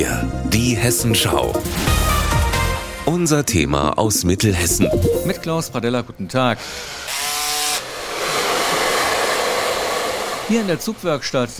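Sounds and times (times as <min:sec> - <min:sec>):
speech: 0:00.0 - 0:02.1, 0:03.1 - 0:07.0, 0:10.5 - 0:11.5
hair dryer blowing on freshly glued cardboard carnival figures: 0:07.0 - 0:11.1.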